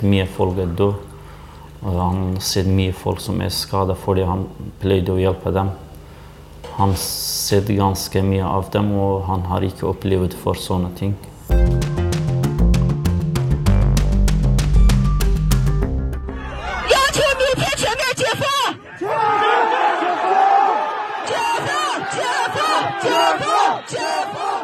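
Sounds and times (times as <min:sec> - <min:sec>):
speech: 0:00.0 - 0:01.1, 0:01.8 - 0:05.8, 0:06.8 - 0:11.9
loud rhythmic music: 0:11.5 - 0:18.1
angry protesters shouting in the street: 0:16.3 - 0:24.6.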